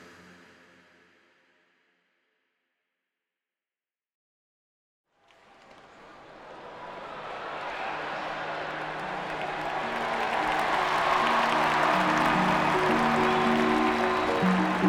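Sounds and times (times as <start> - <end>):
stadium crowd cheering: 5.2 - 14.8
large stadium crowd clapping in a steady rhythm: 6.9 - 14.8.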